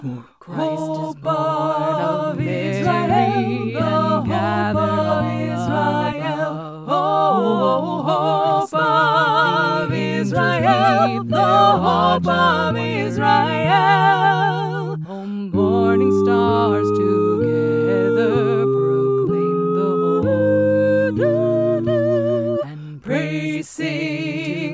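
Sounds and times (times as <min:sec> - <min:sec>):
SATB choir singing a Christmas carol: 0:00.0 - 0:24.7.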